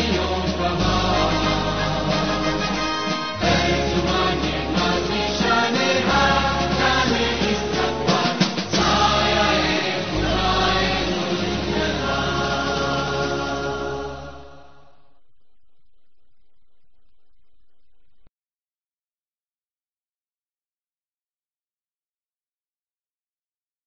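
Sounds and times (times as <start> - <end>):
national anthem music: 0.0 - 14.9.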